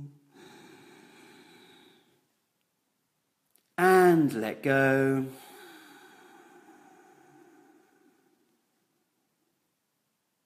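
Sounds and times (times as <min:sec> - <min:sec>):
slow deep breath in during a guided relaxation exercise: 0:00.2 - 0:02.3, 0:05.3 - 0:09.1
speech: 0:03.8 - 0:05.4.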